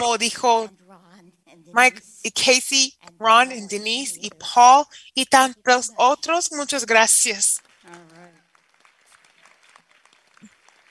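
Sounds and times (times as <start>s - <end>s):
speech: 0.0s - 0.8s, 1.6s - 8.1s
audience applause: 7.6s - 10.8s.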